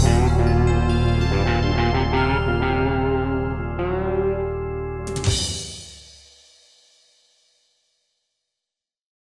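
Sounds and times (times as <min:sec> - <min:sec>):
pop rock music: 0:00.0 - 0:05.8.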